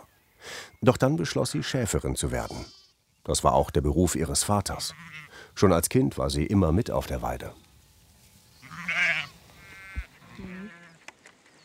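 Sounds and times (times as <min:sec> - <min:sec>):
speech: 0:00.8 - 0:07.7
sheep bleating: 0:02.3 - 0:03.0, 0:04.7 - 0:05.4, 0:08.6 - 0:11.0.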